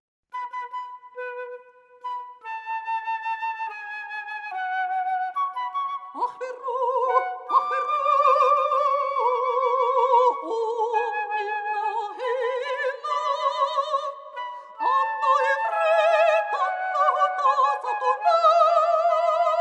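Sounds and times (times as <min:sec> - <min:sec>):
flute: 0:00.3 - 0:19.6
mezzo-soprano singing in Arabic: 0:06.1 - 0:19.6.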